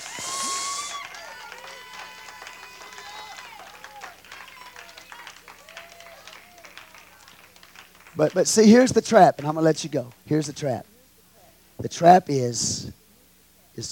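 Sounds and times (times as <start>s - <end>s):
audience hand clapping in praise: 0.0s - 10.7s
speech: 8.2s - 10.9s, 11.9s - 13.0s, 13.8s - 13.9s.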